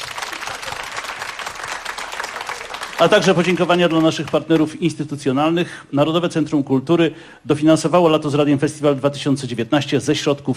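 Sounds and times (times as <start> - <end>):
live audience applause at an outdoor summer radio festival concert: 0.0 - 4.7
speech: 3.0 - 10.5.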